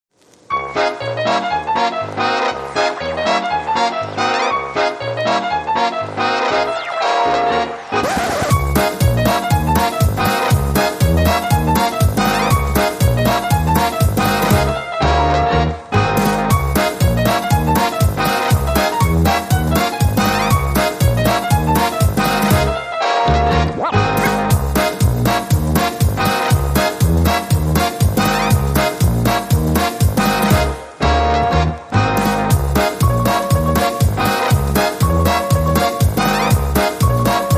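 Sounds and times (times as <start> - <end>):
band music mix without saxophone or guitar: 0.5 - 37.5.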